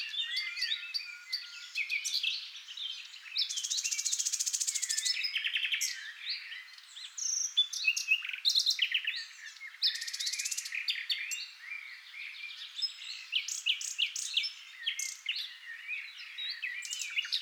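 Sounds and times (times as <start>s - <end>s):
Common nightingale song: 0.0s - 17.4s.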